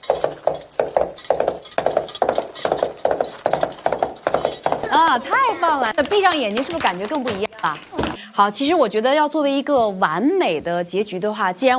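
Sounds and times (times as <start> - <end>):
coconut shells imitating horse hooves clip-clopping: 0.0 - 8.2
speech: 5.1 - 11.7.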